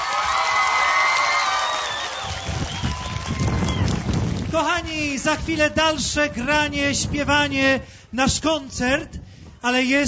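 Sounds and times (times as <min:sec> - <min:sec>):
audience applause: 0:00.0 - 0:04.6
speech: 0:04.6 - 0:10.0.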